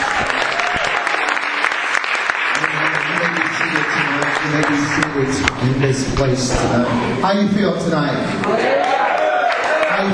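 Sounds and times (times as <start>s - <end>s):
audience applauding: 0.0s - 6.0s, 8.4s - 10.1s
speech: 5.0s - 9.0s.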